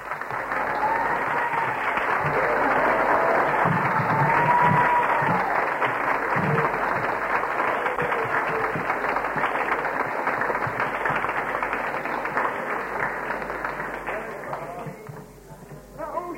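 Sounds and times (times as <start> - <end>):
audience clapping: 0.0 - 15.9.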